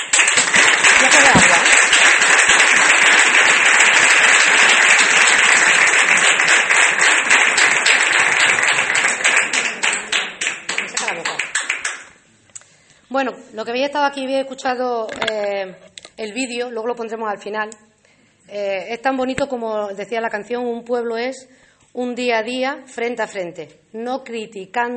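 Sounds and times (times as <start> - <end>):
audience applause: 0.0 - 12.2
speech: 13.2 - 17.9, 18.5 - 24.9.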